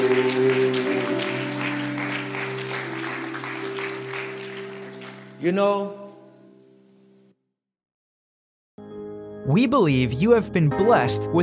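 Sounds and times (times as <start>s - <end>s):
audience clapping hands: 0.0s - 5.8s
speech: 5.4s - 6.0s, 9.5s - 11.4s.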